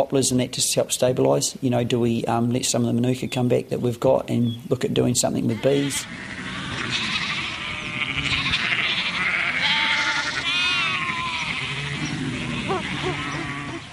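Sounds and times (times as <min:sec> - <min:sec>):
speech: 0:00.0 - 0:07.2
flock of sheep and lambs bleating: 0:05.3 - 0:13.9.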